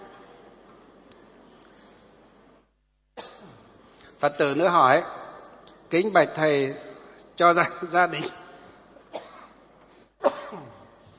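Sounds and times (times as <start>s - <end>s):
speech: 4.2s - 5.2s, 5.9s - 8.4s
person coughing: 9.1s - 9.6s, 10.2s - 10.9s.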